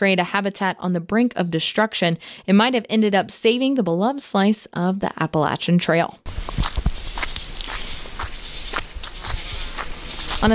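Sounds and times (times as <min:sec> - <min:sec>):
speech: 0:00.0 - 0:06.9
footsteps on gravel hiking path: 0:06.3 - 0:10.5
insects buzzing: 0:06.3 - 0:10.5.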